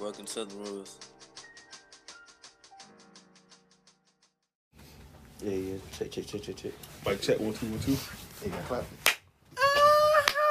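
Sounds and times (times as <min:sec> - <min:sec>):
speech: 0:00.1 - 0:01.2, 0:05.4 - 0:09.0
hand clap: 0:09.0 - 0:09.3, 0:10.2 - 0:10.4.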